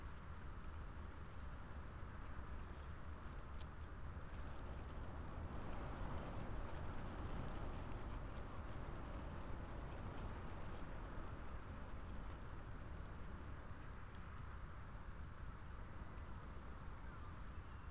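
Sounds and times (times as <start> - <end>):
faint ticks and rattles: 0.0 - 17.8
wind blowing under telegraph wires: 0.0 - 17.8.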